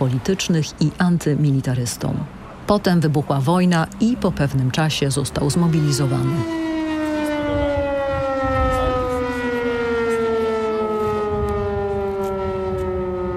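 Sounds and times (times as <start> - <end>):
speech: 0.0 - 6.8
air raid siren winding down: 5.3 - 13.3.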